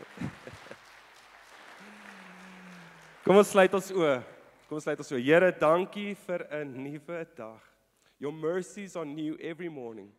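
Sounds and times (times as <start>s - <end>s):
audience applause: 0.0s - 4.2s
brief vocal sound: 1.8s - 3.2s
speech: 3.3s - 10.1s.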